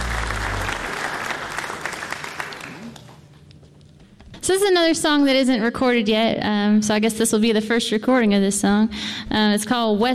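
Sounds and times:
audience applause at a Mountain Stage concert: 0.0 - 3.2
speech: 4.5 - 10.1.

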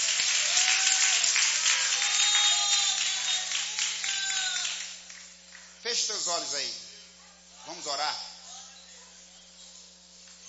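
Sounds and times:
crowd applauding: 0.0 - 5.8
speech: 5.9 - 6.9, 7.7 - 8.3.

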